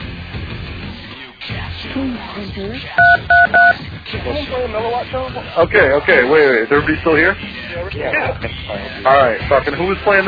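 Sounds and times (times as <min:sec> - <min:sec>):
speech: 0:01.5 - 0:10.2
telephone keypad dialing tones: 0:03.0 - 0:03.8.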